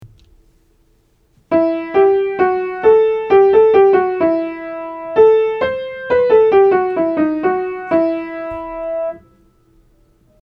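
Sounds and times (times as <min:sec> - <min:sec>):
embellishing tones aural training exercise: 0:01.5 - 0:09.7.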